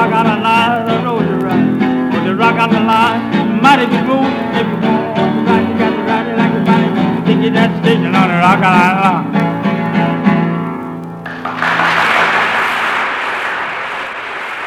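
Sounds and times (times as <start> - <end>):
song with twangy vocals and guitar: 0.0 - 13.6
audience applause: 11.2 - 14.6.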